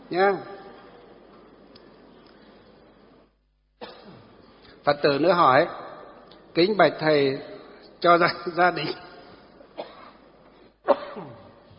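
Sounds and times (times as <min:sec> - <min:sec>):
speech: 0:00.1 - 0:00.6, 0:04.8 - 0:05.8, 0:06.6 - 0:09.0
person coughing: 0:03.8 - 0:04.3, 0:09.8 - 0:11.6
throat clearing: 0:10.8 - 0:11.6.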